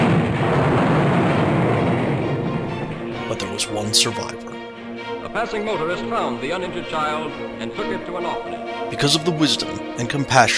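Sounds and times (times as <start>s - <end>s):
huge planet explosion sound effect: 0.0s - 4.2s
speech: 3.6s - 4.4s, 5.3s - 10.5s.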